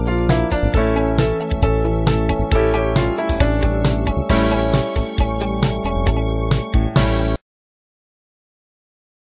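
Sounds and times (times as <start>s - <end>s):
solo music: 0.0s - 7.4s.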